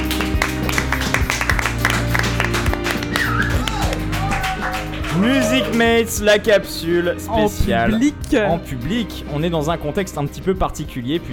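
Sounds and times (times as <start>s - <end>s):
audience applause: 0.0s - 6.0s
speech: 5.2s - 11.3s.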